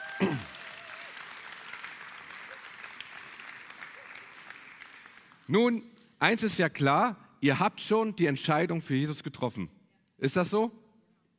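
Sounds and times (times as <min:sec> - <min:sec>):
audience applause: 0:00.0 - 0:05.5
speech: 0:05.5 - 0:10.8.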